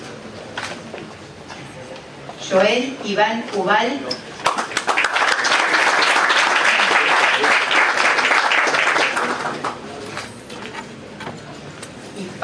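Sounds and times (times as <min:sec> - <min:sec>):
speech: 0:02.5 - 0:04.3
audience applause: 0:04.4 - 0:10.0.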